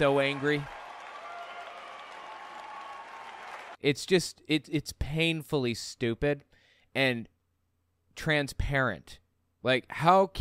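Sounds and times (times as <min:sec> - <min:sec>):
speech: 0:00.0 - 0:00.8, 0:03.8 - 0:07.3, 0:08.2 - 0:10.3
crowd cheering: 0:00.0 - 0:03.8.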